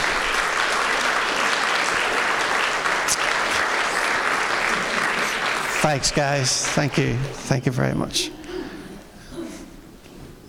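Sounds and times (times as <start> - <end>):
audience applause: 0.0 - 8.0
speech: 5.8 - 8.4.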